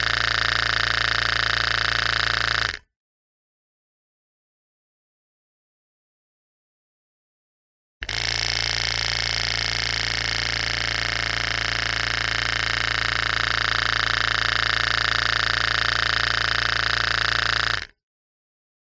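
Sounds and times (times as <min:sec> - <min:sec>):
machine compressor switching on and off in short bursts recorded with a contact mic: 0:00.0 - 0:02.8, 0:08.0 - 0:17.9.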